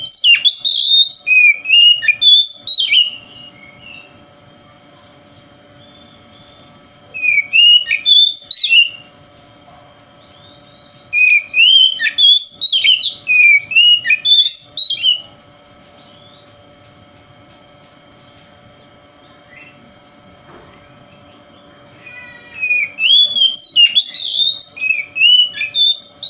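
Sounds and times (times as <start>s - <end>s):
Oriental magpie-robin song: 0.0s - 4.2s, 5.1s - 9.1s, 10.2s - 26.2s.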